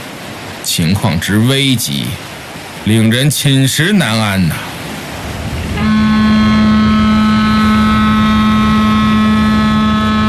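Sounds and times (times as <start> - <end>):
speech: 0.7 - 4.8
large cargo ship horn on a river: 5.6 - 10.2.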